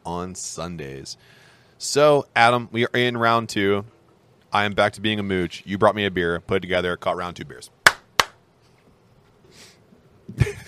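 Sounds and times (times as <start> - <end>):
speech: 0.1 - 7.8, 10.3 - 10.6
hand claps: 7.9 - 8.4.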